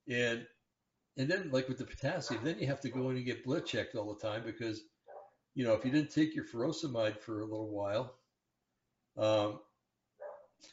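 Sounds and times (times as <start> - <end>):
speech: 0.1 - 0.6, 1.2 - 4.9, 5.6 - 8.2, 9.2 - 9.7
dog barking: 2.2 - 3.8, 5.1 - 5.4, 10.2 - 10.6.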